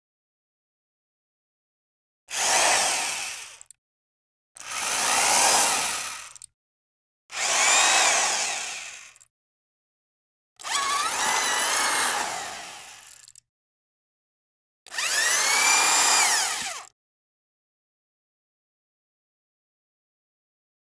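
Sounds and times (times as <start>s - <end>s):
drill: 2.3s - 3.8s, 4.6s - 6.5s, 7.3s - 9.3s, 10.6s - 13.4s, 14.9s - 17.0s.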